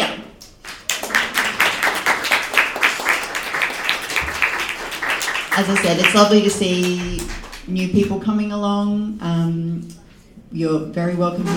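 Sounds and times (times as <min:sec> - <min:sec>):
audience applause: 0:00.6 - 0:07.9
speech: 0:05.6 - 0:11.5.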